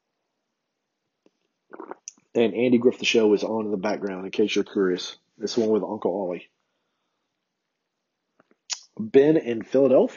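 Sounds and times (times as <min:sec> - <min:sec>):
sipping coffee: 0:01.7 - 0:02.2
speech: 0:02.4 - 0:06.6, 0:09.0 - 0:10.1.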